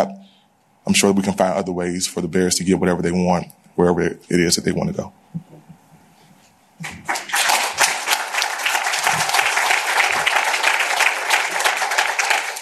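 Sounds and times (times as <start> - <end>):
speech: 0.8 - 5.4
audience applause: 6.8 - 12.6.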